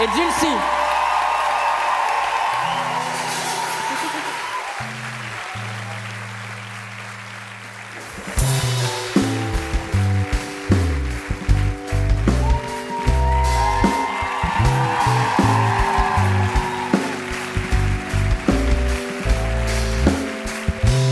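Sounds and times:
speech: 0:00.0 - 0:00.8
audience applauding loudly: 0:00.0 - 0:21.1
low musical tones: 0:04.9 - 0:21.1.

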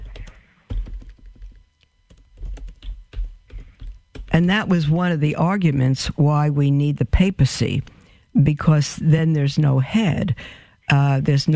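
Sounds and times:
typing on a computer keyboard: 0:00.0 - 0:04.3
speech: 0:04.4 - 0:11.5.

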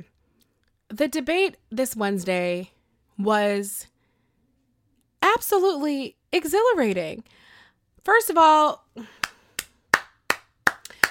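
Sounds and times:
speech: 0:00.9 - 0:03.9, 0:05.3 - 0:09.2
hands clapping: 0:09.2 - 0:11.0.

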